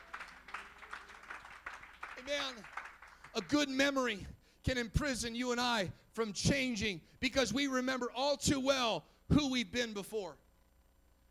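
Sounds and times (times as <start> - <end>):
audience clapping hands: 0.0 - 3.8
speech: 2.2 - 2.8, 3.4 - 10.4.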